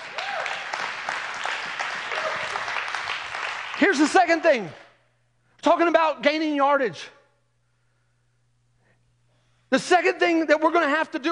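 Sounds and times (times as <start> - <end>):
audience applause: 0.0 - 4.8
speech: 3.8 - 4.8, 5.6 - 7.2, 9.7 - 11.3.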